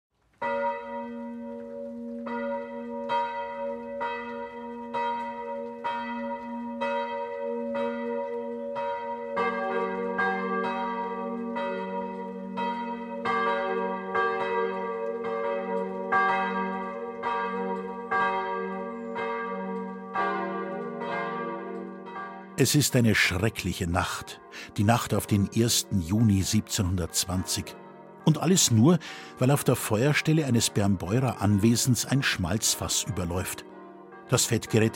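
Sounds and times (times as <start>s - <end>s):
noon church bells of St. Nikolaus parish church in Bernbeuren: 0.4s - 34.9s
speech: 22.6s - 33.7s, 34.3s - 34.9s.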